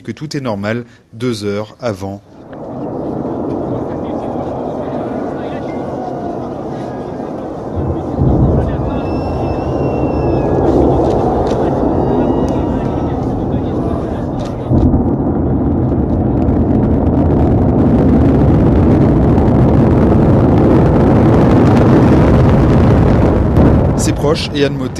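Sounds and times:
speech: 0:00.0 - 0:02.4, 0:24.4 - 0:24.9
Soyuz rocket launch roar: 0:02.3 - 0:24.9.

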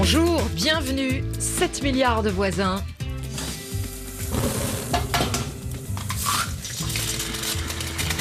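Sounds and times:
speech: 0:00.1 - 0:03.0
food sizzling and grilling: 0:03.2 - 0:08.1.

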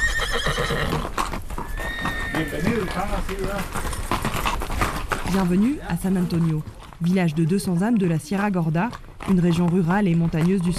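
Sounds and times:
horse whinnying in a Sierra Gorda mountain village in Mexico: 0:00.0 - 0:03.7
horse hooves clip-clopping: 0:00.0 - 0:10.7
noise: 0:00.0 - 0:10.7
speech: 0:02.4 - 0:04.0, 0:05.3 - 0:10.7.

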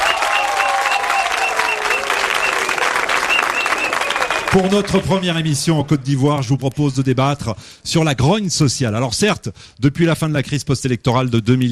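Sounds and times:
audience applauding: 0:00.0 - 0:05.6
speech: 0:04.5 - 0:11.6.

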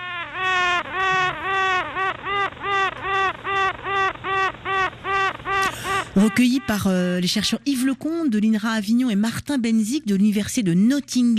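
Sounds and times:
honeybee queen piping song inside hive: 0:00.0 - 0:07.2
speech: 0:06.2 - 0:11.3.

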